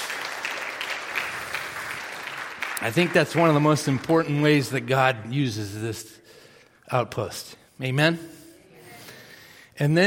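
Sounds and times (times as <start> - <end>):
audience applauding: 0.0 - 4.9
speech: 2.8 - 6.2, 6.9 - 8.4, 9.8 - 10.0.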